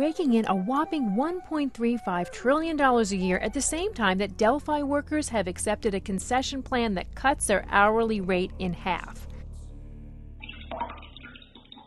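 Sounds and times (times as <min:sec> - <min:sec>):
speech: 0:00.0 - 0:09.3
bath water sloshing in a bathtub: 0:10.5 - 0:11.8.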